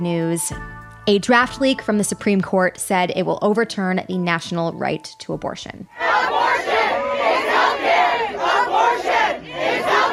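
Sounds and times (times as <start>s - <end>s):
speech: 0.0s - 6.7s
protesters chanting on the steps of the Supreme Court in D.C.: 5.9s - 10.1s.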